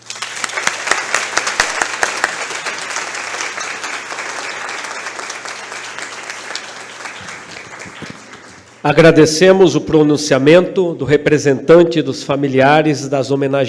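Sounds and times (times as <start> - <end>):
audience applause: 0.0 - 8.8
speech: 8.8 - 13.6.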